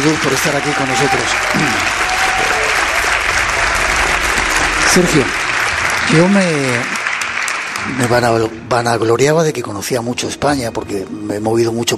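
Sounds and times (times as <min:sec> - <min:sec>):
speech: 0:00.0 - 0:02.1, 0:05.0 - 0:05.4, 0:06.1 - 0:07.0, 0:07.8 - 0:11.9
audience applauding a guide being introduced: 0:00.0 - 0:08.8.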